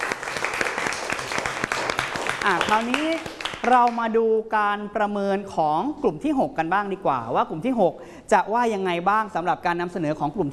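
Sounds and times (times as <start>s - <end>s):
class applauding group two: 0.0s - 4.0s
speech: 2.4s - 10.5s.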